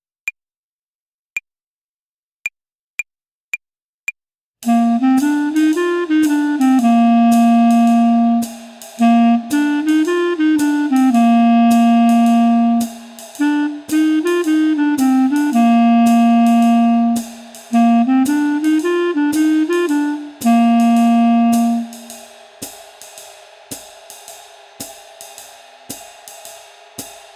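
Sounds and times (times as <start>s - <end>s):
clarinet phrasing exercise play-along in jazz club style: 4.6s - 22.2s.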